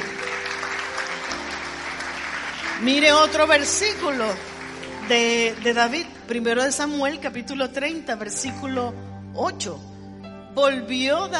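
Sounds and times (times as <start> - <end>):
audience applause: 0.0 - 6.1
speech: 2.8 - 4.5, 5.1 - 9.9, 10.6 - 11.3.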